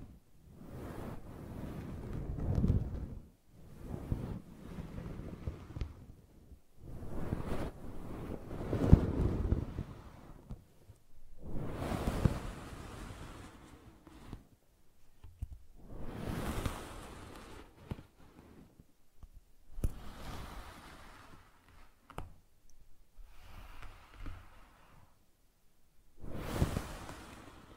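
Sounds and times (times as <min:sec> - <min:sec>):
brushing and scratching strokes: 0:00.0 - 0:06.2, 0:06.8 - 0:14.6, 0:15.2 - 0:19.0, 0:19.6 - 0:25.3, 0:26.1 - 0:27.7.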